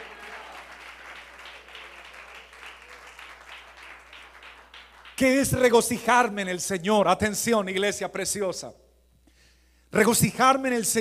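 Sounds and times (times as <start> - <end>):
audience applauding: 0.0 - 5.7
speech: 5.2 - 8.8, 10.0 - 10.9.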